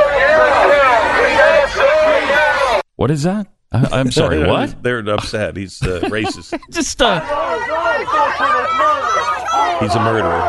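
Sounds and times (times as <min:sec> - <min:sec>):
protest crowd screaming outside the Supreme Court: 0:00.0 - 0:02.8, 0:07.2 - 0:10.4
speech: 0:03.0 - 0:10.4
laughter: 0:03.8 - 0:09.4.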